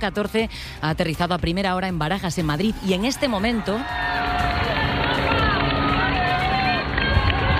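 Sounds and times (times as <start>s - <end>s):
speech: 0.0s - 4.2s
crowd in the streets of Madrid during Pope Leo XIV's visit in the popemobile: 2.4s - 7.5s.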